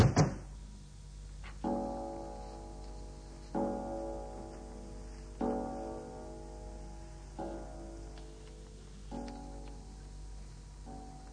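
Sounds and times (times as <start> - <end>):
front door shutting with a solid thud: 0.0 - 0.5
resonant ringing tones: 1.6 - 11.3.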